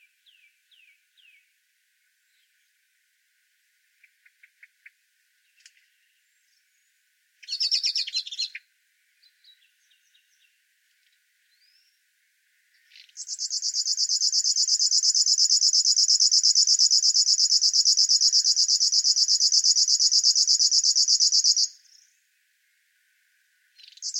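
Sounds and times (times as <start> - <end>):
river warbler Locustella fluviatilis singing: 4.0 - 12.0, 12.7 - 22.4, 23.7 - 24.1.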